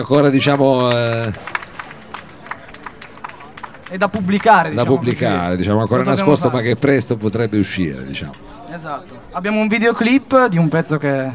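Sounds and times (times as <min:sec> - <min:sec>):
speech: 0:00.0 - 0:01.6, 0:03.9 - 0:11.3
small group applauding: 0:00.0 - 0:05.8.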